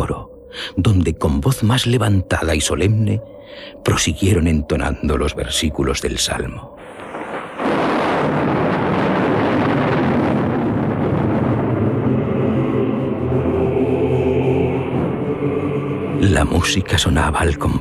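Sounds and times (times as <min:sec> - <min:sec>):
speech: 0:00.0 - 0:06.8, 0:16.4 - 0:17.8
distant rumbling thunder: 0:06.8 - 0:17.2.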